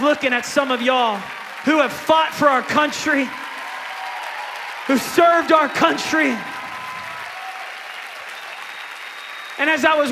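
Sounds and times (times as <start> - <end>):
speech: 0.0 - 3.4, 4.9 - 6.5, 9.6 - 10.1
crowd applause: 0.0 - 10.1
faint whistles or cheers: 3.1 - 10.1.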